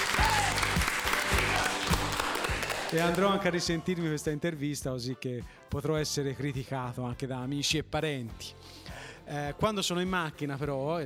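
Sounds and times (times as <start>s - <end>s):
applause: 0.0s - 3.9s
speech: 2.9s - 11.0s.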